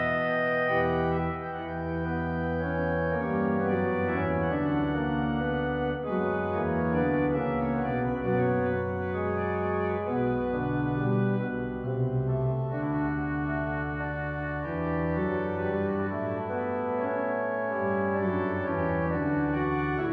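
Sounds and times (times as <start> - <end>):
organ trio in D major: 0.0 - 20.1.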